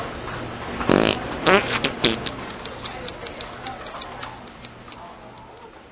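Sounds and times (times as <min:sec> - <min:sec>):
fart pads: 0:00.8 - 0:02.5.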